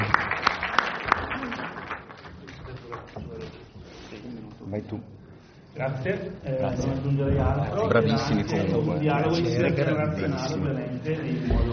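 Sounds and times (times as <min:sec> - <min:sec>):
audience applause: 0:00.0 - 0:03.5
speech: 0:04.7 - 0:05.2, 0:05.8 - 0:11.7.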